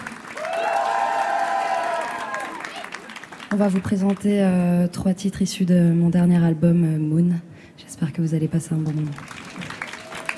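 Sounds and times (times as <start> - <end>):
audience applause: 0.0 - 4.2, 8.9 - 10.3
crowd cheering and whooping: 0.1 - 3.1, 9.6 - 10.3
speech: 3.5 - 9.4.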